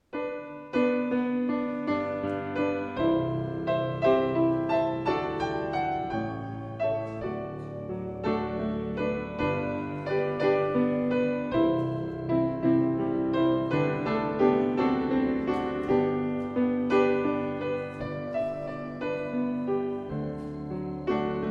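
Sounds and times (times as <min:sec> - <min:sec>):
prelude music: 0:00.0 - 0:21.4.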